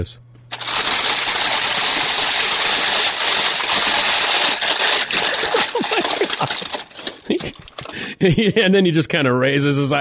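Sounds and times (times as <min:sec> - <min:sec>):
speech: 0:00.0 - 0:00.3, 0:05.9 - 0:09.9
compostable chip bag crinkling loudly: 0:00.5 - 0:08.0
laughter: 0:05.0 - 0:08.8.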